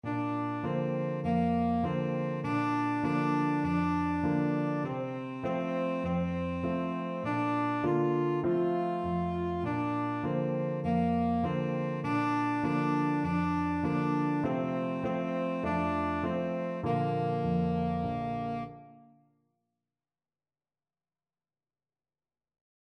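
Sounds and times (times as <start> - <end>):
tenor saxophone: 0.0 - 19.2.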